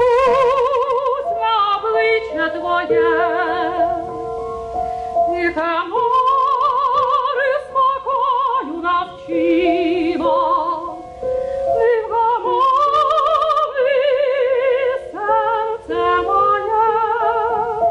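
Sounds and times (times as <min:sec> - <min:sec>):
Ukrainian art song: 0:00.0 - 0:17.8.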